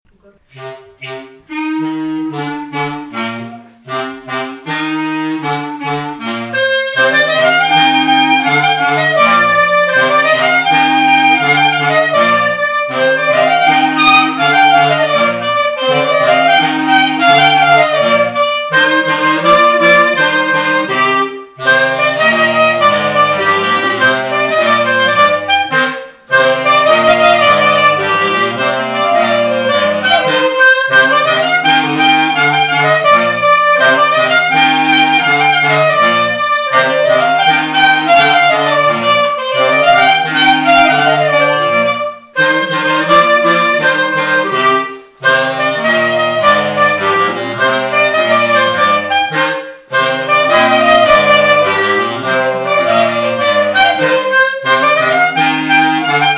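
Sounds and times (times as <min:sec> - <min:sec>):
Breton dance tune on clarinet: 0:00.1 - 0:56.3.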